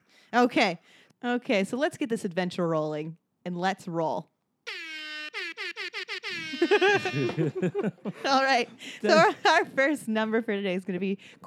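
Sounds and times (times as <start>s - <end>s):
speech: 0.3s - 4.8s, 6.6s - 11.4s
train horn honking: 4.7s - 7.6s
laughter: 6.2s - 9.8s.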